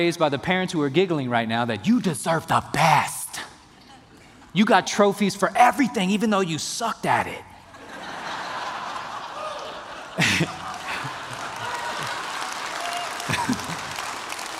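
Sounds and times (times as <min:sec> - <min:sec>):
speech: 0:00.0 - 0:03.2, 0:04.5 - 0:07.5
laughter and chuckling: 0:07.7 - 0:12.5, 0:13.2 - 0:14.2
crowd applauding: 0:08.4 - 0:14.5.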